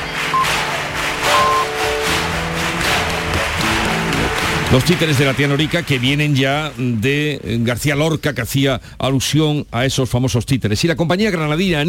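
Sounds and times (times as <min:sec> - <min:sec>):
flamenco-style ovation, audience clapping: 0:00.0 - 0:08.0
speech: 0:04.7 - 0:11.8.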